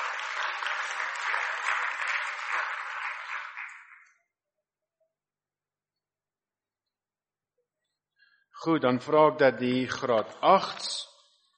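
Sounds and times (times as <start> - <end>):
audience applause: 0.0 - 4.1
speech: 8.6 - 11.0.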